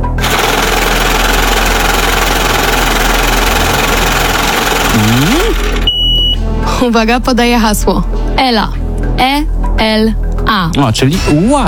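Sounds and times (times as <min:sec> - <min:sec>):
lottery drawing machine running: 0:00.0 - 0:06.4
speech: 0:06.8 - 0:11.6.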